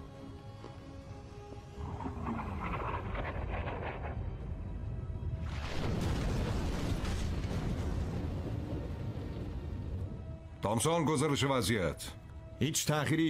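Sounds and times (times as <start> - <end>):
torpedo explosions hitting the target: 1.8 - 10.2
speech: 10.6 - 13.2.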